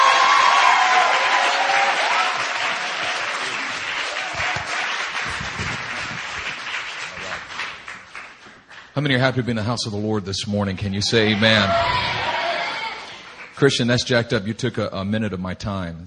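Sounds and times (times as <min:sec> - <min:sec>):
church congregation applauding as a pastor is welcomed up: 0:00.0 - 0:09.3, 0:11.0 - 0:14.1
speech: 0:09.0 - 0:12.3, 0:13.6 - 0:16.0.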